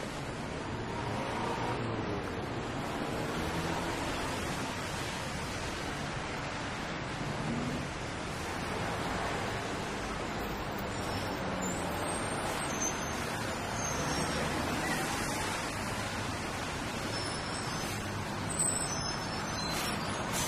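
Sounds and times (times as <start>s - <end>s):
downtown city ambience: 0.0s - 20.4s.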